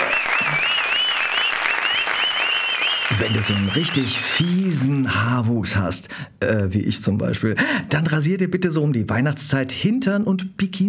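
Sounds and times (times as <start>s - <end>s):
applause: 0.0s - 5.4s
speech: 3.2s - 10.8s.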